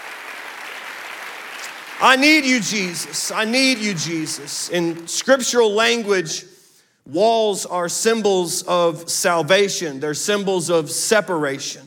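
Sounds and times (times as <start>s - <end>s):
audience clapping: 0.0s - 5.2s
speech: 2.0s - 11.8s.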